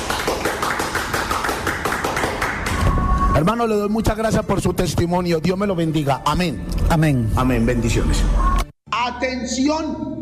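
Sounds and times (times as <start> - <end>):
audience applauding in a temple: 0.0 - 3.1
speech: 3.4 - 10.2.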